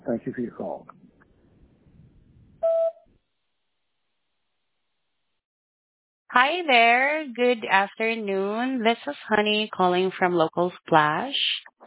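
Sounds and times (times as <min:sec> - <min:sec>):
speech: 0:00.1 - 0:01.0, 0:06.3 - 0:11.6
voicemail recording tone electronic beep: 0:02.6 - 0:03.0.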